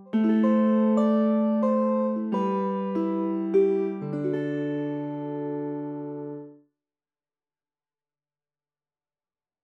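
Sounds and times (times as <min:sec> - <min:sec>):
dulcimer playing: 0:00.0 - 0:06.5.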